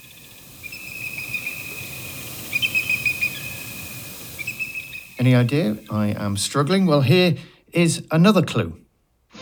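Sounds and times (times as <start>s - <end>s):
bald eagle calls: 0.0s - 6.2s
speech: 5.2s - 8.8s.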